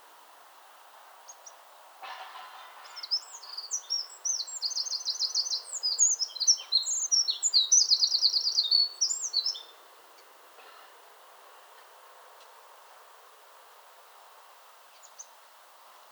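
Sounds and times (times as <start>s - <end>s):
faint hiss: 0.0s - 16.1s
Eurasian wren singing: 2.8s - 9.8s, 14.9s - 15.4s.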